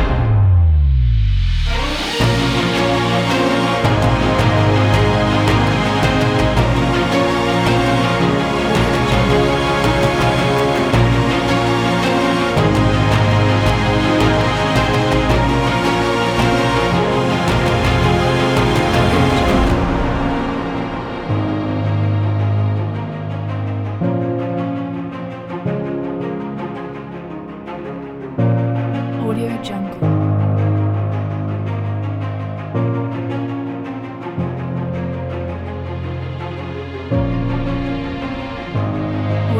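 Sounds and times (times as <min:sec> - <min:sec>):
epic background music: 0:00.0 - 0:39.5.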